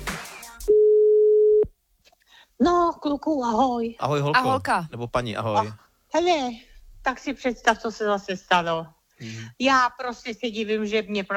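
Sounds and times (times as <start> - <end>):
telephone line tone after dialing a phone number: 0.7 - 1.7
speech: 2.6 - 11.3.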